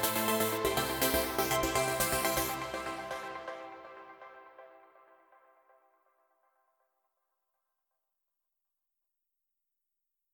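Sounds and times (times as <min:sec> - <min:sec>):
dance music: 0:00.0 - 0:04.2.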